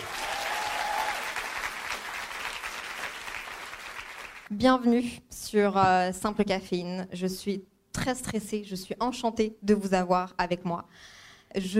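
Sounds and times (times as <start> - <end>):
audience applause: 0.0 - 4.5
speech: 4.5 - 11.7.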